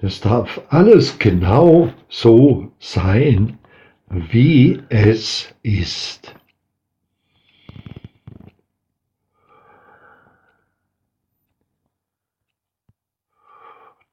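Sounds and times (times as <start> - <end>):
speech: 0.0 - 6.4
deep conscious breathing during a guided breathing exercise: 3.6 - 4.1, 7.1 - 8.5, 9.3 - 11.0, 13.2 - 14.1.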